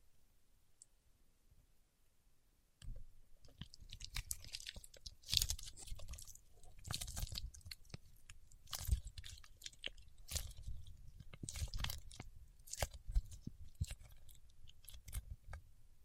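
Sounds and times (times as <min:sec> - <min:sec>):
paraffin wax peeled and scratched: 0:03.4 - 0:15.7.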